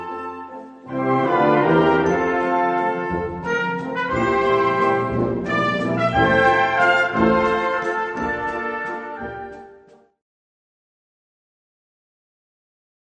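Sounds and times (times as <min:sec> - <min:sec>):
waltz: 0:00.0 - 0:10.2.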